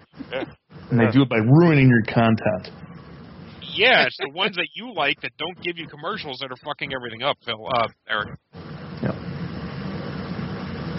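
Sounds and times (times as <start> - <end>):
air conditioner running: 0.0 - 10.9
speech: 0.3 - 2.9, 3.8 - 8.5
laughter: 3.6 - 7.1.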